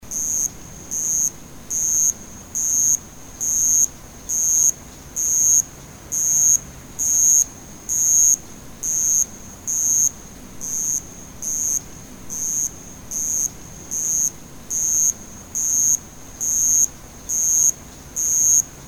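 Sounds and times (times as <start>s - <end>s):
summer insects chirping: 0.1s - 18.8s.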